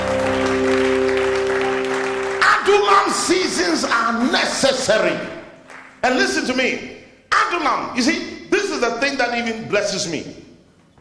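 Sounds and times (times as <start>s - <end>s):
audience clapping: 0.0s - 6.6s
speech: 3.1s - 5.4s, 6.0s - 10.4s.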